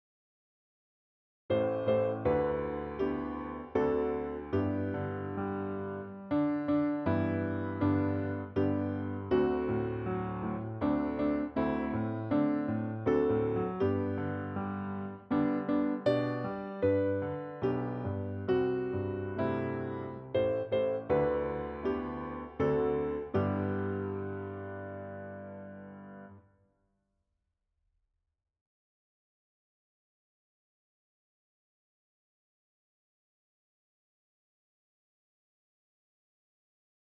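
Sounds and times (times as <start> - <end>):
electric piano: 1.5 - 26.4.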